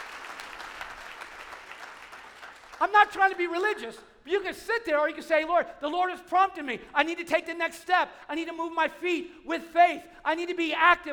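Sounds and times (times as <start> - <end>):
church congregation clapping: 0.0 - 4.1
speech: 2.8 - 11.1.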